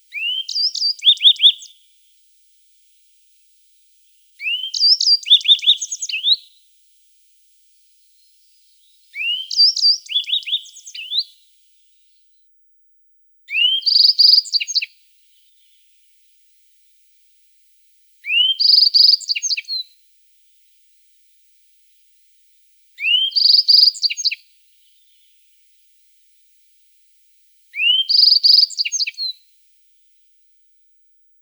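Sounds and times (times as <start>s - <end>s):
yellow-browed bunting song: 0.1s - 1.8s, 4.4s - 6.6s, 8.0s - 12.3s, 13.5s - 15.9s, 18.2s - 20.0s, 23.0s - 25.4s, 27.8s - 29.5s.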